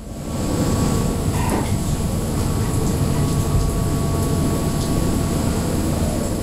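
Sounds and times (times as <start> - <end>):
rain beating on the deck of the Dutch ship Pelagia: 0.0 - 6.4.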